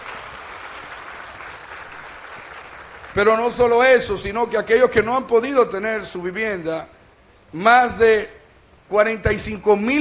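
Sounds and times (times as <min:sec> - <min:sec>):
audience applause: 0:00.0 - 0:03.3
speech: 0:03.2 - 0:09.9.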